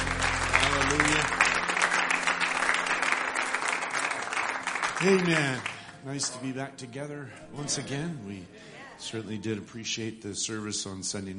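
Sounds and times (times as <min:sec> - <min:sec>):
hand clapping: 0:00.0 - 0:06.4
speech: 0:05.0 - 0:11.3.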